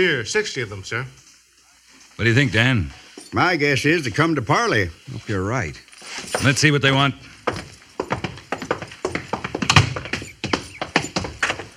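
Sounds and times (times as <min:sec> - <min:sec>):
speech: 0:00.0 - 0:01.3, 0:02.2 - 0:07.6
hoofbeats of a single horse carrying an Indian chief toward a fort's main gate: 0:06.2 - 0:11.7.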